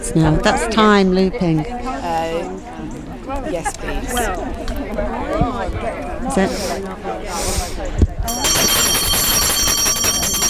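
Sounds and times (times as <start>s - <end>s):
voices murmuring: 0.0s - 10.4s
speech: 0.1s - 2.6s, 3.4s - 8.5s
shrill electric bell ringing: 8.3s - 10.4s.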